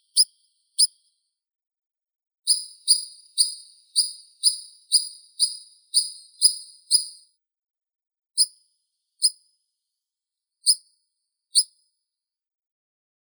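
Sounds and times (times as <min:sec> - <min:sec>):
European pied flycatcher singing: 0:00.0 - 0:01.0, 0:02.5 - 0:07.2.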